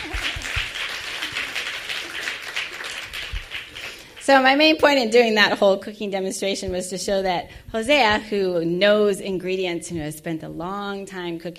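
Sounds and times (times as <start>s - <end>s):
audience applause: 0.0s - 4.2s
speech: 4.3s - 11.5s.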